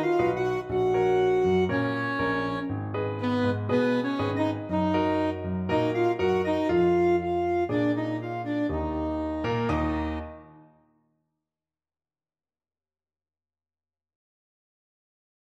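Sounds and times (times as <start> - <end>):
saxophone in a duet: 0.0 - 10.5
clarinet in a duet: 0.0 - 10.7.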